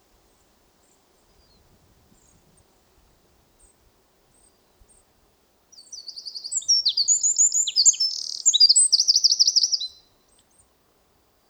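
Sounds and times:
Eurasian wren rapid trilling song: 5.8s - 10.0s.

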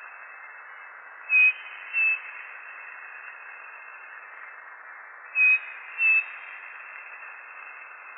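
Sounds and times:
bird song of paired high whistles: 1.3s - 2.2s, 5.4s - 6.3s.

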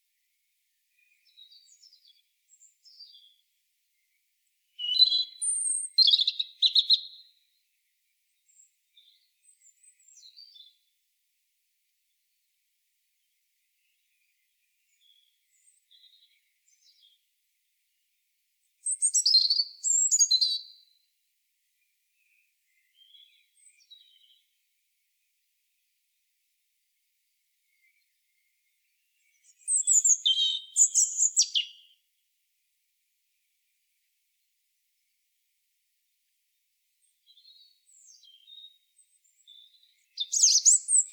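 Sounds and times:
European robin song of high whistles and warbled trills: 0.9s - 3.4s, 4.7s - 7.5s, 8.4s - 10.9s, 18.8s - 21.0s, 22.2s - 24.5s, 27.6s - 32.0s, 37.0s - 41.1s.

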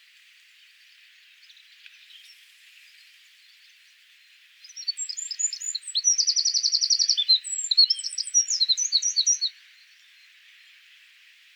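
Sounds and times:
Eurasian wren singing: 4.8s - 9.5s.

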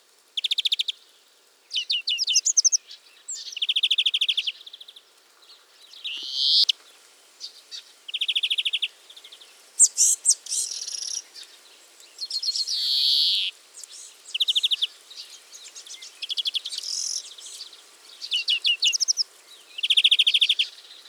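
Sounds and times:
European greenfinch calls: 1.7s - 4.6s, 6.0s - 6.8s, 7.4s - 9.0s, 9.8s - 11.5s, 12.2s - 21.0s.

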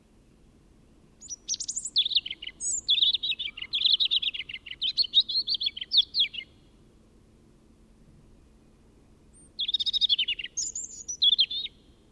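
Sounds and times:
faint low hum: 0.0s - 12.1s
European robin singing: 0.9s - 6.7s, 9.3s - 12.0s.

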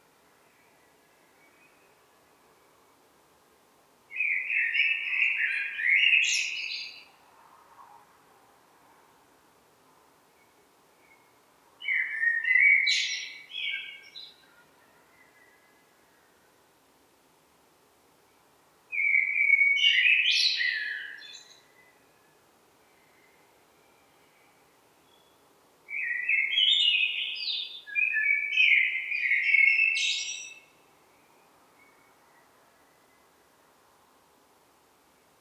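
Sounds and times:
common blackbird song: 4.1s - 7.2s, 10.4s - 16.6s, 18.9s - 33.5s.

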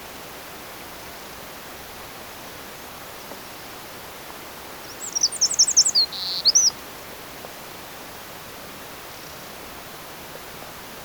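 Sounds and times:
constant hiss: 0.0s - 11.0s
Eurasian wren singing: 4.8s - 6.8s.

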